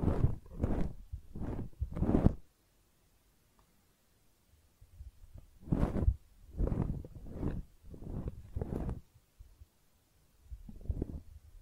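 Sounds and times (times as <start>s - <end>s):
close-up ear cleaning rubbing strokes: 0.0s - 2.4s, 5.6s - 9.0s.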